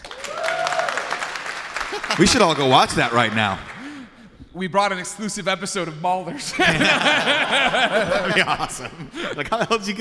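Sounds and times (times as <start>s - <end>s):
audience applause: 0.0s - 4.0s
laughter: 1.8s - 3.5s, 6.3s - 9.9s
speech: 2.1s - 3.7s, 4.6s - 9.9s.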